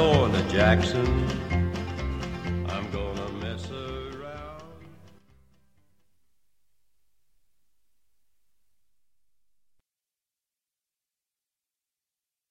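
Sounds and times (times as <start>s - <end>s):
cowboy music: 0.0s - 6.3s.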